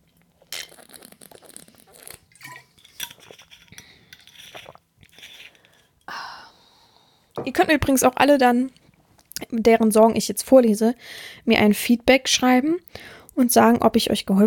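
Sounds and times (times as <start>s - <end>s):
person sipping a drink: 0.1s - 7.1s
slurping and swallowing: 0.4s - 2.3s, 3.0s - 5.8s
speech: 7.4s - 8.8s, 9.5s - 14.4s.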